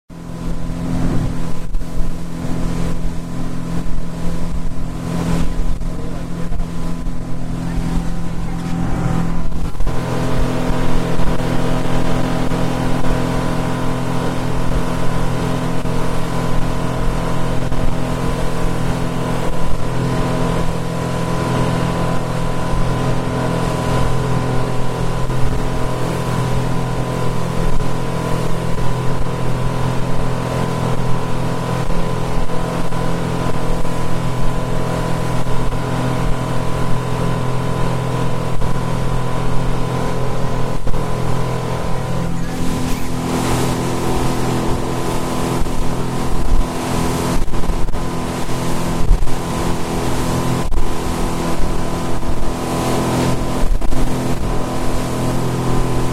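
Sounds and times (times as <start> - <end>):
boat: 0.1 - 56.1.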